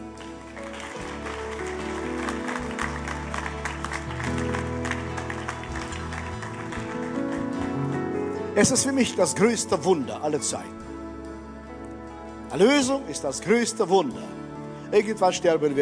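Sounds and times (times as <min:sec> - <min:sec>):
audience applause: 0:00.0 - 0:08.0
speech: 0:08.6 - 0:10.8, 0:12.6 - 0:15.8.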